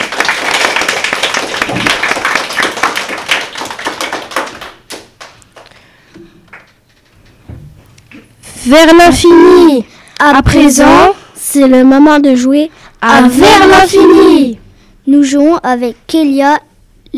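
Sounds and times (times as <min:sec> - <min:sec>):
crowd applauding: 0:00.0 - 0:06.8
speech: 0:08.7 - 0:17.1.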